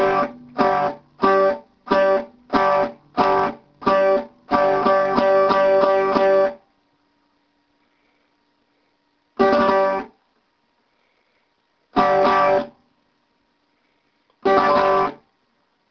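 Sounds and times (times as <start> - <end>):
strings strummed: 0.0 - 6.6, 9.4 - 10.1, 12.0 - 12.8, 14.4 - 15.2.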